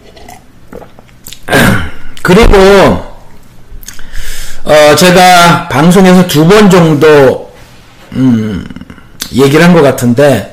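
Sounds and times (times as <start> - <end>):
coughing: 1.4 - 2.1
speech: 2.3 - 3.1, 4.7 - 7.5, 8.1 - 10.5.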